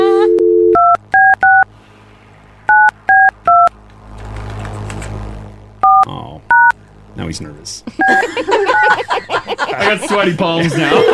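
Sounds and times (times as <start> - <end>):
telephone keypad dialing tones: 0.3 - 1.6, 2.7 - 3.7
low rushing hiss: 1.7 - 11.1
laughter: 7.8 - 11.1
speech: 9.8 - 11.1.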